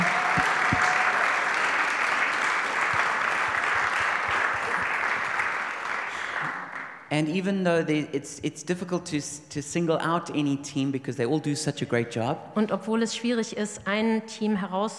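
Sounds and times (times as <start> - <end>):
audience applause: 0.0 - 7.0
speech: 7.1 - 14.9.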